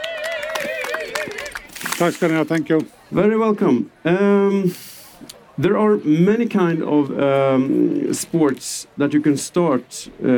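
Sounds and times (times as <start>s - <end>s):
audience applause welcoming a guest: 0.0s - 2.5s
speech: 2.0s - 10.3s.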